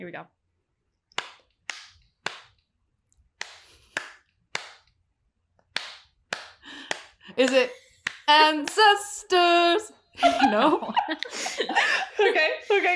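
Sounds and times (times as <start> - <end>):
speech: 0.0 - 0.4, 7.4 - 12.9
hand clapping a song rhythm: 1.1 - 2.6, 3.4 - 4.9, 5.7 - 9.0
laughter: 10.2 - 12.9.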